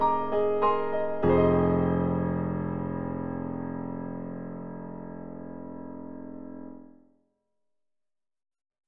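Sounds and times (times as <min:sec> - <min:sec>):
jazzy warm grand piano: 0:00.0 - 0:06.9.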